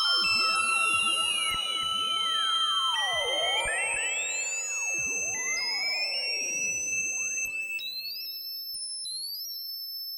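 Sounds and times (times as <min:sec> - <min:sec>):
8 voice Moog Poly Phatty synthesizer calibrating through a Dreadbox Hypnosis: 0:00.1 - 0:07.6.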